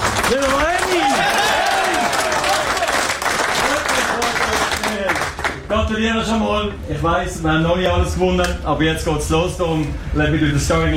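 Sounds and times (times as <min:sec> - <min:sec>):
applause in a locker room: 0:00.0 - 0:05.7
voices calling and cheering: 0:00.3 - 0:03.0
speech: 0:05.8 - 0:10.9.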